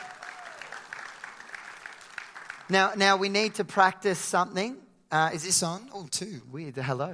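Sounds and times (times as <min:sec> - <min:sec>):
audience applause: 0:00.0 - 0:03.0
speech: 0:02.7 - 0:07.1.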